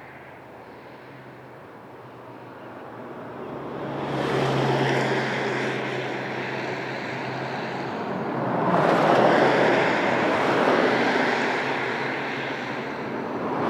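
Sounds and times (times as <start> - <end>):
cars passing on a distant highway: 4.0 - 13.6.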